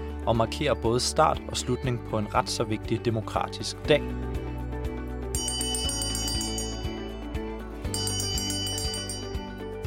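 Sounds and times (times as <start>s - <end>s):
speech: 0.2s - 4.5s
election bell ringing: 5.4s - 9.7s.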